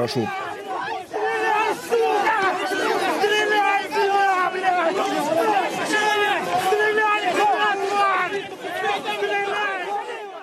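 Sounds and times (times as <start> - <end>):
speech: 0.0 - 0.5
crowd shouting and yelling while advancing: 0.0 - 10.4.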